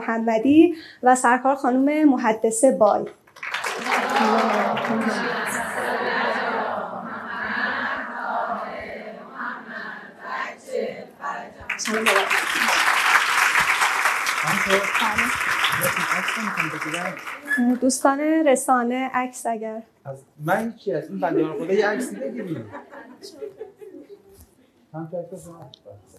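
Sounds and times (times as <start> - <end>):
speech: 0.0 - 5.4, 11.8 - 12.4, 14.7 - 23.7, 24.9 - 26.1
audience applause: 3.4 - 6.0, 11.7 - 17.6
laughter: 3.6 - 8.9, 14.4 - 17.6, 21.3 - 24.4.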